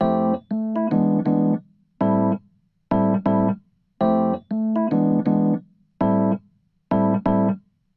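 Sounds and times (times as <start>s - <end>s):
electric piano: 0.0s - 7.6s.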